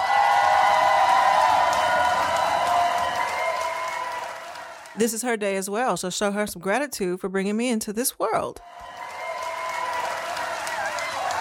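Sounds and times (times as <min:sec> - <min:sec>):
crowd applause: 0:00.0 - 0:05.0, 0:08.6 - 0:11.3
speech: 0:05.0 - 0:09.0.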